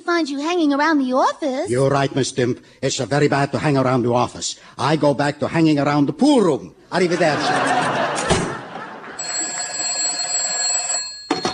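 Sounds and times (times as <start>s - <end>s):
speech: 0.2s - 8.3s
laughter: 6.9s - 9.8s
telephone ringing: 8.0s - 11.5s.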